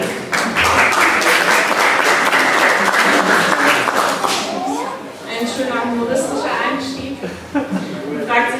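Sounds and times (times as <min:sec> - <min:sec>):
applause: 0:00.0 - 0:04.8
laughter: 0:00.6 - 0:08.5.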